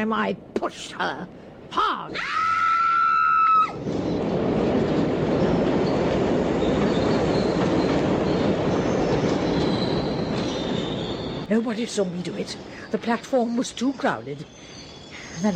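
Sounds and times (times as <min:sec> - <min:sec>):
speech: 0:00.0 - 0:02.5, 0:03.6 - 0:04.3, 0:11.5 - 0:14.8, 0:15.4 - 0:15.5
train pulling into a station platform: 0:00.0 - 0:15.5
train wheels squealing entering a station: 0:05.4 - 0:15.5.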